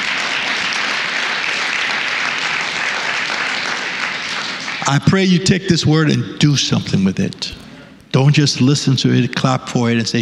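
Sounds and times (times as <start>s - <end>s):
audience clapping: 0.0s - 5.4s
speech: 4.9s - 7.6s, 8.2s - 10.2s.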